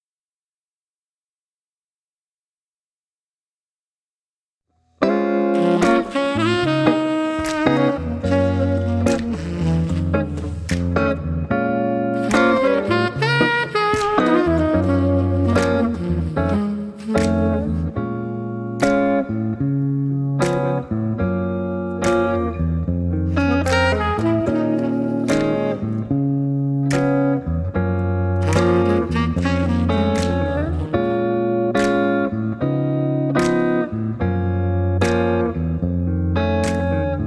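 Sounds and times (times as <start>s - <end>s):
blues accompaniment: 4.7s - 37.2s.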